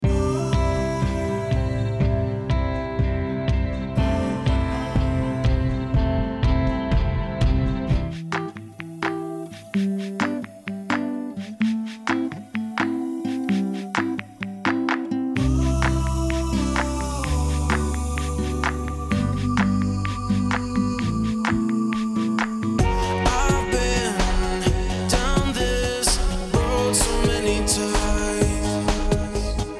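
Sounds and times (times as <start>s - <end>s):
indie pop music mix: 0.0s - 29.7s.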